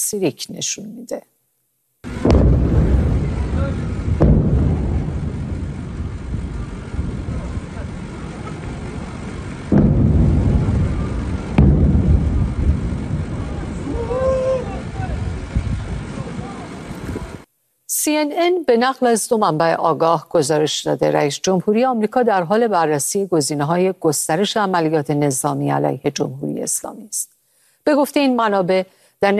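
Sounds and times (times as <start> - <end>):
speech: 0.0 - 1.3, 18.0 - 29.3
several explosions in Sirik: 2.0 - 17.4.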